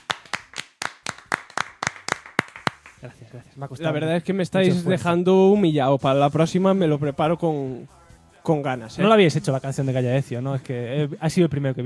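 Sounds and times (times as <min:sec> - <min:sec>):
small group clapping: 0:00.0 - 0:03.2
speech: 0:03.0 - 0:11.8.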